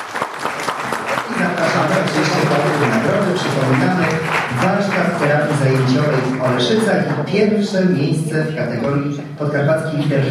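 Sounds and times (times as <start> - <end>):
audience applause: 0.0 - 7.0
speech: 3.0 - 10.3.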